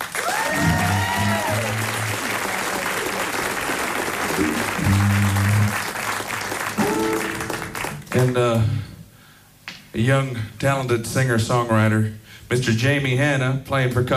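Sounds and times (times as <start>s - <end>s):
audience applause welcoming a band at a live concert: 0.0s - 8.8s
short musical notes: 4.5s - 5.8s, 6.8s - 8.0s
speech: 8.2s - 8.9s, 10.0s - 14.1s.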